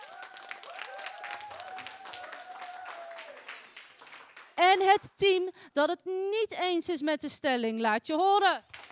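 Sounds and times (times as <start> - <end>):
group applause from students: 0.0 - 4.6, 8.7 - 8.9
speech: 4.6 - 8.8.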